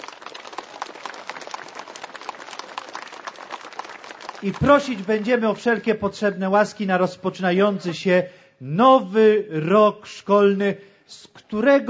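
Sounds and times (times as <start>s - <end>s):
audience applause: 0.0s - 5.8s
speech: 4.4s - 11.8s.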